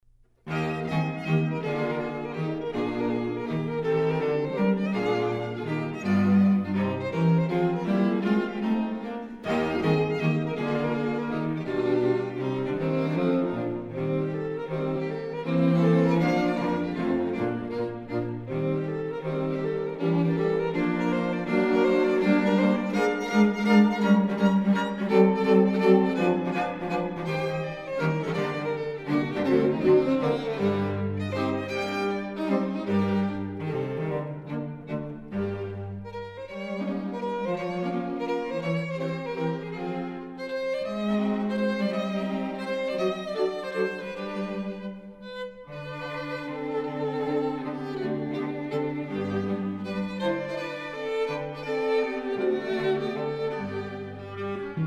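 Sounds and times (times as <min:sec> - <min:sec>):
string quartet: 0:00.0 - 0:54.8.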